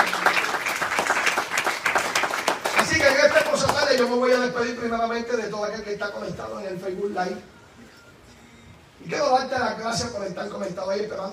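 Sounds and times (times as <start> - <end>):
audience applause: 0.0 - 4.2
speech: 4.0 - 7.6, 9.0 - 11.3.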